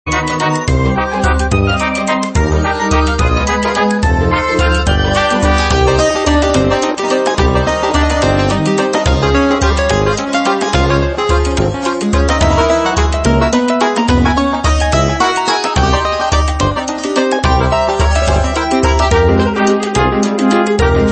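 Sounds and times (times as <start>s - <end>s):
waltz music: 0.1s - 21.1s.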